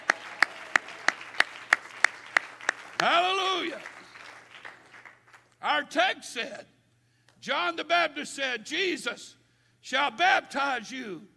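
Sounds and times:
audience clapping hands: 0.0 - 5.6
speech: 3.0 - 3.9, 5.6 - 6.8, 7.4 - 11.3.

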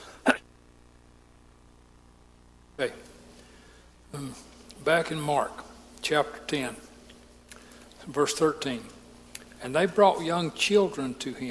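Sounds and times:
sharp cough: 0.2 - 0.4
speech: 2.8 - 3.1, 4.1 - 6.9, 8.0 - 9.0, 9.6 - 11.4.

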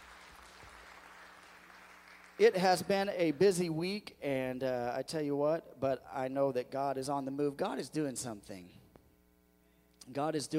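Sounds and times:
audience clapping in welcome: 0.0 - 3.6
speech: 2.4 - 8.8, 10.1 - 10.5.

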